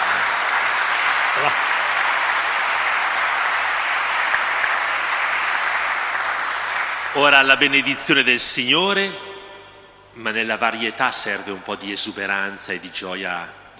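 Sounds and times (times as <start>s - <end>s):
audience applause: 0.0s - 7.6s
speech: 1.4s - 1.7s, 7.2s - 9.3s, 10.2s - 13.7s.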